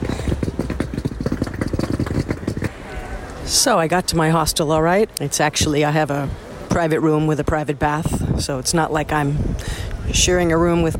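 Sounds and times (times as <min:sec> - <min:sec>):
rolling bag wheels on cobblestones: 0:00.0 - 0:04.6
speech: 0:03.5 - 0:10.9.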